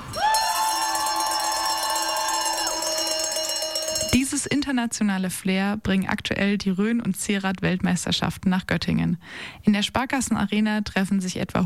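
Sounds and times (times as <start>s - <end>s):
cheering crowd: 0.0s - 4.2s
cowbells ringing: 0.2s - 4.7s
speech: 4.1s - 11.6s.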